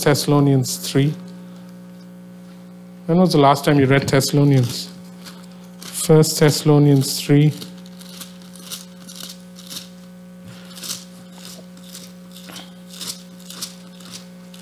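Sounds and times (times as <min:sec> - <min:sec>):
speech: 0:00.0 - 0:01.3, 0:03.1 - 0:04.9, 0:06.1 - 0:07.7
paper pages rustling: 0:04.1 - 0:12.7.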